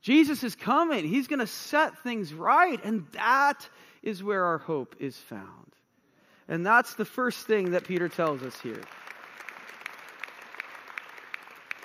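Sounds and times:
speech: 0:00.0 - 0:05.8, 0:06.5 - 0:09.0
audience clapping: 0:07.4 - 0:11.8.

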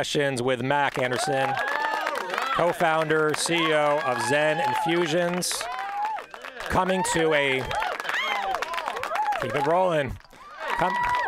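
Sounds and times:
speech: 0:00.0 - 0:01.7, 0:02.6 - 0:05.8, 0:06.7 - 0:07.9, 0:09.4 - 0:10.2, 0:10.8 - 0:11.1
crowd cheering sound effect: 0:00.8 - 0:11.2.

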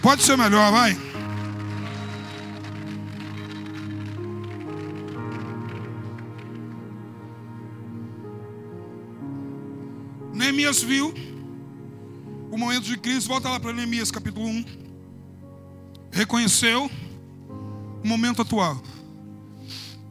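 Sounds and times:
speech: 0:00.0 - 0:01.1, 0:10.6 - 0:11.4, 0:12.5 - 0:14.8, 0:16.1 - 0:17.1, 0:18.0 - 0:19.0
audience applauding: 0:00.0 - 0:07.1.

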